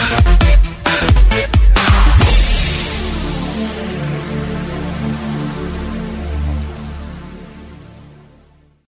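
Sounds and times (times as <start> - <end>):
funk and electro house music: 0.0 - 6.2.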